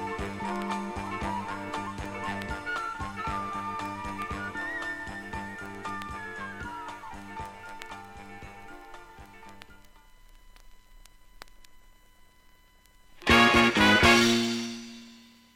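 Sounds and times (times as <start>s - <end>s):
jazz rock music: 0.0s - 9.9s, 13.2s - 15.4s.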